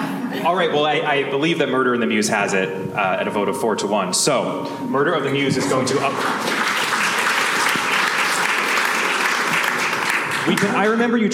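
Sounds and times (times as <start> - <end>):
speech: 0.4 - 6.8, 10.5 - 11.3
crowd clapping: 5.6 - 11.0.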